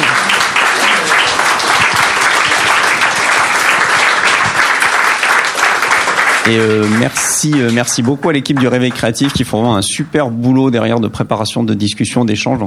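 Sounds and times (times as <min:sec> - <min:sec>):
audience applause: 0:00.0 - 0:09.4
speech: 0:06.5 - 0:12.6.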